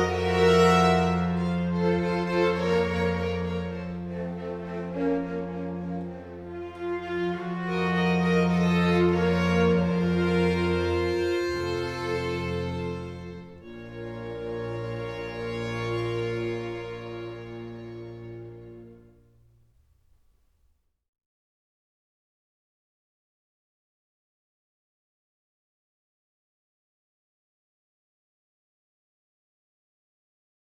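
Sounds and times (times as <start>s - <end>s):
string orchestra playing a sinfonia in B minor: 0.0s - 19.2s.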